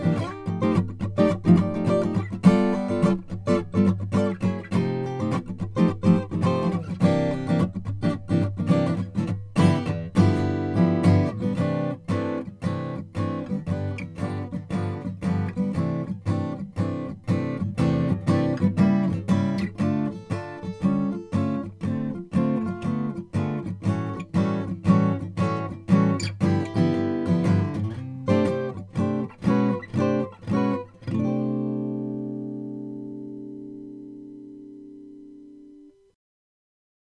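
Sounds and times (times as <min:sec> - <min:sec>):
Froggy Bottom K Deluxe koa acoustic guitar: 0:00.0 - 0:36.1.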